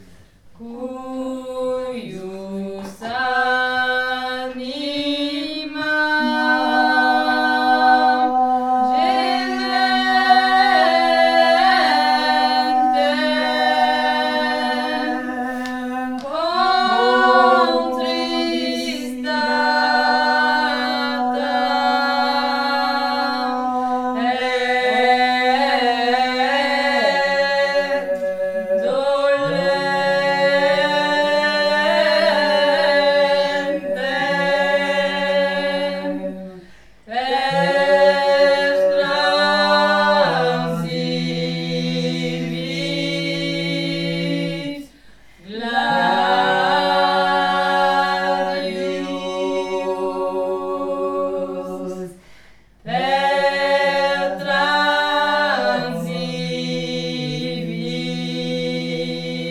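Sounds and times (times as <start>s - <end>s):
vocal trio singing: 0.0s - 59.5s.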